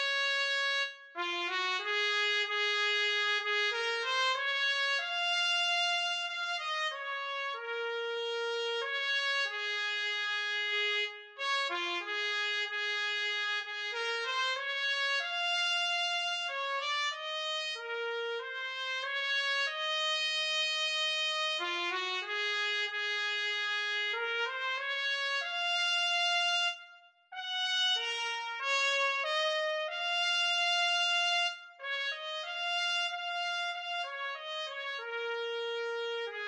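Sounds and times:
trumpet: 0.0s - 36.4s.

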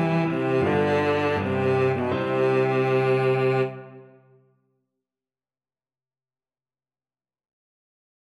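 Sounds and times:
cello playing a tune: 0.0s - 4.3s.

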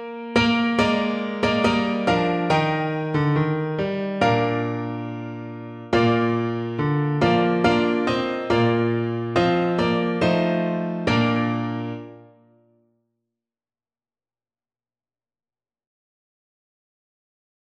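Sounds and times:
piano: 0.0s - 12.8s.

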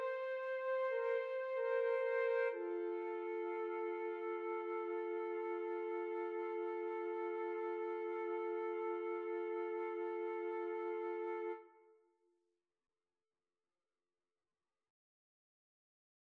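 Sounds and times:
flute trio playing: 0.0s - 11.6s.

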